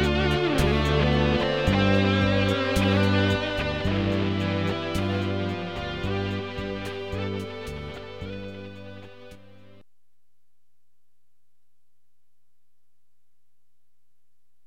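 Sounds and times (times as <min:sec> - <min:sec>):
guitar solo: 0:00.0 - 0:09.8.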